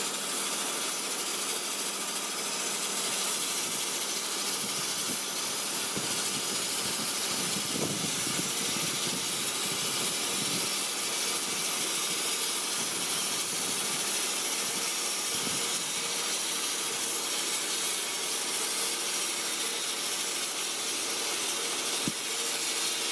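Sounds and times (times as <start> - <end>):
mobile sawmill running: 0.0 - 23.1.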